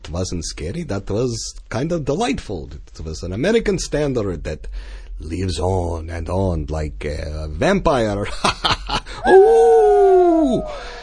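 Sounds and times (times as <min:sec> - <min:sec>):
speech: 0:00.1 - 0:09.7, 0:10.4 - 0:10.9
wolf howling: 0:09.2 - 0:11.0.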